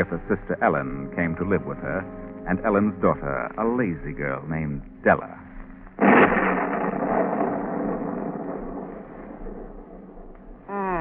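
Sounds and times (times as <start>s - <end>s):
speech: 0.0s - 5.4s
thunder of approaching storm: 6.0s - 10.7s.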